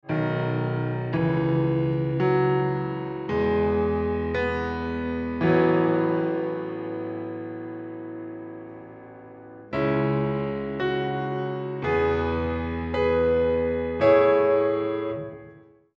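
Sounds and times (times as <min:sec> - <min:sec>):
piano: 0:00.0 - 0:15.9.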